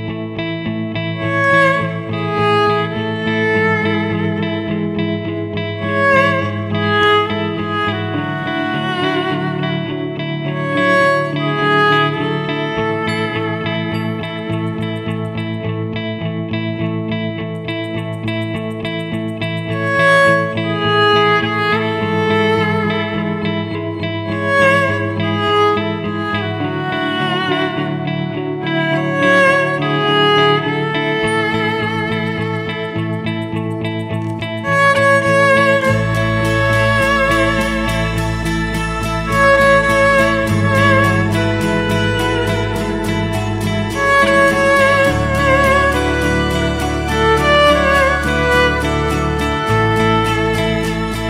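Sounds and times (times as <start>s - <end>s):
solo violin: 0.1s - 18.1s, 18.9s - 51.2s.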